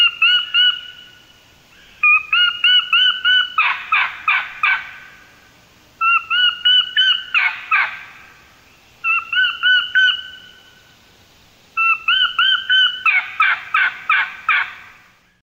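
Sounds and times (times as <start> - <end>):
sweet sassy turkey hen call: 0.0 - 1.2, 1.8 - 5.1, 6.0 - 8.2, 9.0 - 10.6, 11.8 - 15.0.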